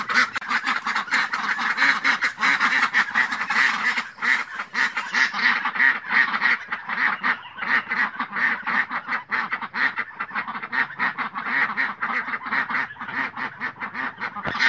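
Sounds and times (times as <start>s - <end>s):
domestic ducks giving loud harsh quacks: 0.0s - 14.6s.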